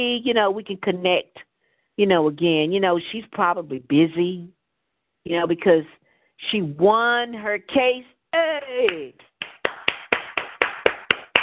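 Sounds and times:
speech: 0.0s - 4.6s, 5.2s - 9.3s
one person clapping hands: 8.9s - 11.4s.

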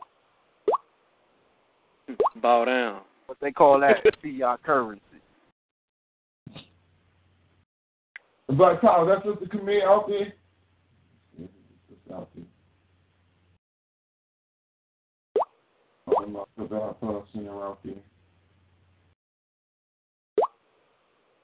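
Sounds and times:
water-drop notification sound from a tablet: 2.1s - 2.4s
speech: 2.1s - 5.1s, 8.5s - 10.4s, 16.3s - 18.1s.

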